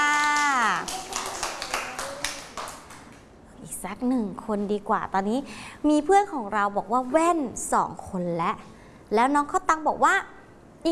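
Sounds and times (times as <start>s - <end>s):
scattered clapping for a child: 0.1s - 3.3s
speech: 3.8s - 10.9s.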